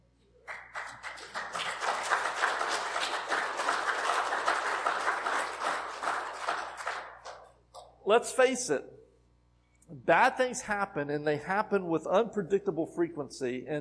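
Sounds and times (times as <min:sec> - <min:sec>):
people clapping hands: 0:00.4 - 0:07.9
speech: 0:08.1 - 0:09.0, 0:10.1 - 0:13.7.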